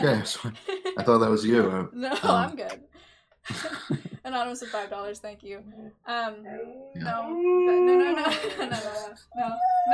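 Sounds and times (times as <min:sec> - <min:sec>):
speech: 0:00.0 - 0:09.9
laughter: 0:03.5 - 0:04.2, 0:07.7 - 0:09.9
dogs howling: 0:05.7 - 0:08.4, 0:09.4 - 0:09.9.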